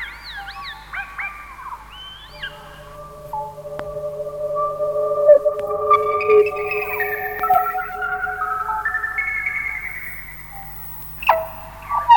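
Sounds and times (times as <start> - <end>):
New Zealand electroacoustic music: 2.4 - 12.0.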